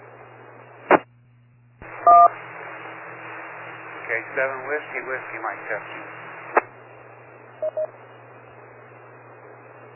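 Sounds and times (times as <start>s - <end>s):
faint static: 0.0s - 9.9s
low hum: 0.0s - 9.9s
speech: 4.1s - 6.2s
electronic beeps on an amateur radio emergency net: 7.6s - 7.9s.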